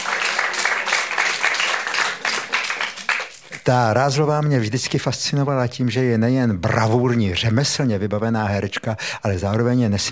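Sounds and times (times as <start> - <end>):
crowd applauding: 0.0 - 3.6
speech: 3.7 - 10.0.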